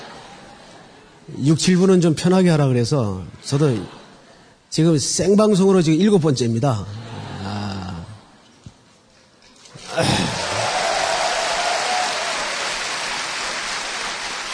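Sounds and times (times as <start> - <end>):
speech: 1.3 - 4.0, 4.7 - 7.1
applause during a sermon: 9.7 - 14.5.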